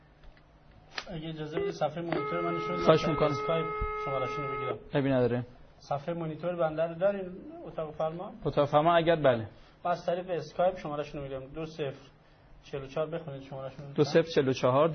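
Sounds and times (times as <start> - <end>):
speech: 1.3 - 14.9
telephone line noise: 1.6 - 4.8.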